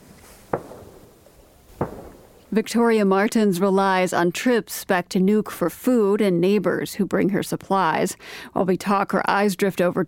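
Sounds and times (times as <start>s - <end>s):
gunshots echoing around a fjord: 0.5s - 2.5s
speech: 2.5s - 10.0s.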